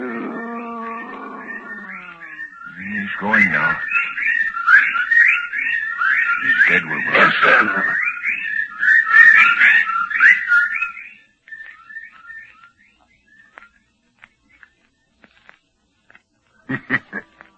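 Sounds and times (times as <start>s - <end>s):
bird calls: 0.0s - 17.5s
speech: 3.2s - 4.1s, 6.7s - 8.0s
laughter: 16.6s - 17.5s.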